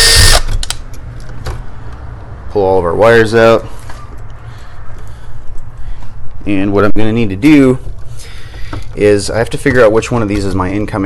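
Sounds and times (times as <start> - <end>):
power drill in high gear unscrewing an electrical switch: 0.0 - 0.5
speech: 2.6 - 3.8, 6.4 - 7.9, 9.0 - 11.0.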